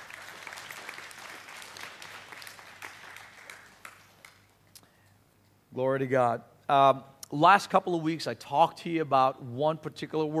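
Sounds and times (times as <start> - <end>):
audience applause: 0.0 - 4.5
speech: 5.8 - 10.3.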